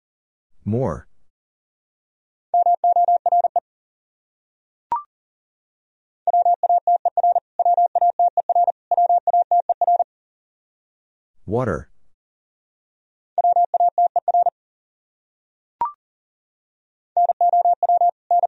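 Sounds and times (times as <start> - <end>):
speech: 0.6 - 1.1, 11.5 - 11.9
Morse code tones at 40 words per minute: 2.6 - 3.6, 6.3 - 10.0, 13.4 - 14.5, 17.2 - 18.4.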